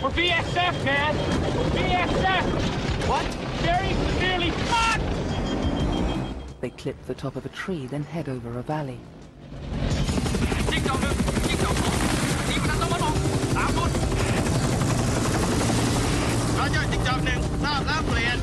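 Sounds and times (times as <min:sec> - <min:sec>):
speech: 0:00.0 - 0:05.4, 0:06.6 - 0:09.8, 0:16.7 - 0:18.4
helicopters lifting off and flying low over jungle: 0:00.0 - 0:18.4.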